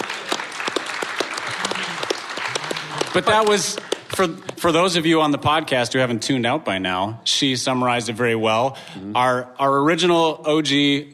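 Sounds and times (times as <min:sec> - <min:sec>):
group clapping: 0:00.0 - 0:05.1
speech: 0:03.1 - 0:11.1
low voice murmuring: 0:09.0 - 0:09.4.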